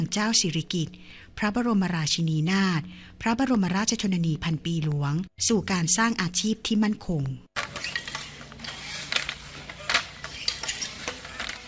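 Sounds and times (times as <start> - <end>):
speech: 0.0 - 7.5
traditional hand-operated beater loom clacking in Sai Buri, Pattani, Thailand: 7.6 - 11.6.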